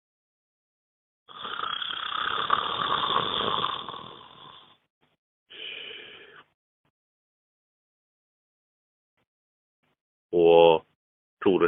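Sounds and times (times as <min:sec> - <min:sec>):
thick rumbling snoring outside a window: 0:01.3 - 0:04.8
speech: 0:11.4 - 0:11.6.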